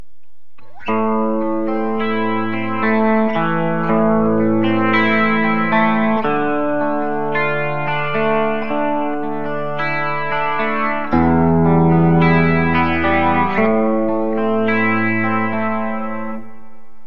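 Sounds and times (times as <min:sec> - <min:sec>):
clean guitar bridge: 0:00.3 - 0:17.0.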